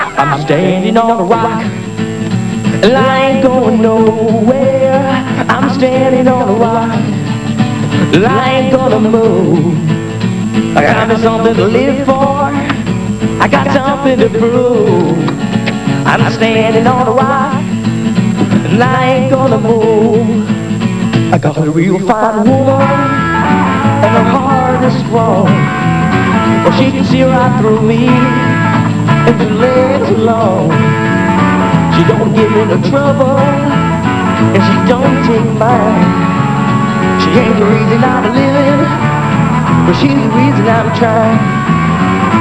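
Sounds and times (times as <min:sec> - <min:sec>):
rock music: 0:00.0 - 0:21.4, 0:22.4 - 0:42.3.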